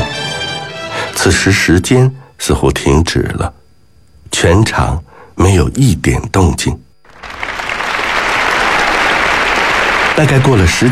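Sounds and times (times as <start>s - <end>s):
speech: 1.2s - 3.6s, 4.3s - 6.8s, 10.2s - 10.9s
thunderous applause: 7.1s - 10.9s.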